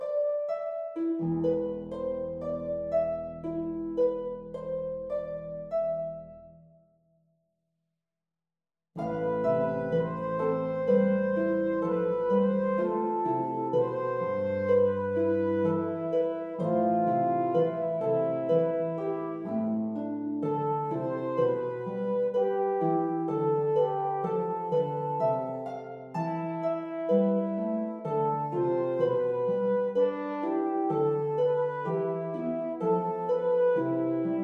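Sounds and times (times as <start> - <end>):
harp: 0.0 - 6.9, 9.0 - 34.4
horn: 9.0 - 34.4.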